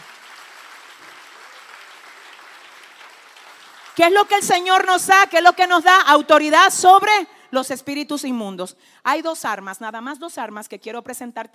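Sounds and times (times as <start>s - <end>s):
audience applause: 0.0s - 4.1s
speech: 4.0s - 11.5s.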